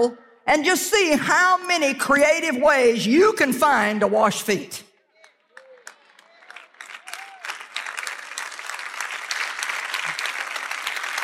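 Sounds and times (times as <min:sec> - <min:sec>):
speech: 0:00.0 - 0:04.9
audience clapping: 0:05.2 - 0:11.2.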